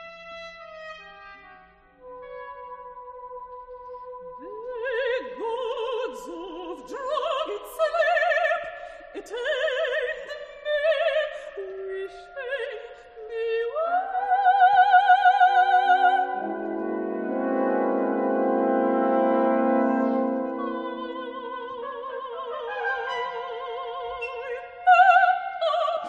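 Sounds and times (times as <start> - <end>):
soprano singing: 2.0 - 26.0
orchestra playing: 16.3 - 21.5.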